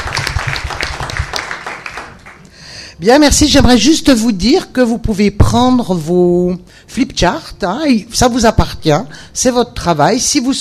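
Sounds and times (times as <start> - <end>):
workshop audience clapping: 0.0 - 2.5
speech: 3.0 - 10.5.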